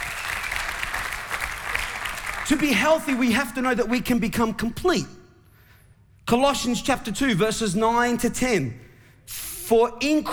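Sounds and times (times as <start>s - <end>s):
audience applause: 0.0s - 3.2s
speech: 2.5s - 5.2s, 6.3s - 10.3s.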